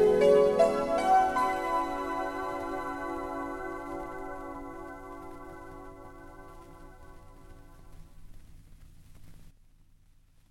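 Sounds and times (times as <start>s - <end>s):
piano: 0.0s - 8.4s.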